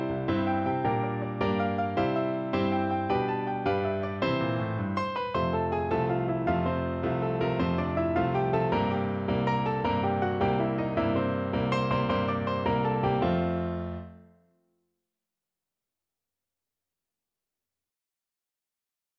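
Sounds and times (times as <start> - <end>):
piano tune: 0.0 - 14.5.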